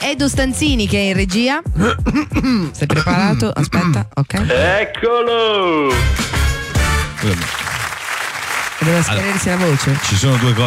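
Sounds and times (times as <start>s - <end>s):
speech: 0.1s - 6.4s, 7.2s - 7.7s, 8.8s - 10.6s
audience applause on an Italian radio programme: 6.1s - 10.6s.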